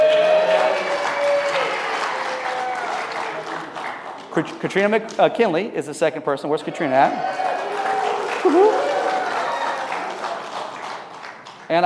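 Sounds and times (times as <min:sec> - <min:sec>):
audience applause: 0:00.0 - 0:04.5, 0:07.0 - 0:11.8
speech: 0:04.4 - 0:07.5, 0:08.4 - 0:08.9.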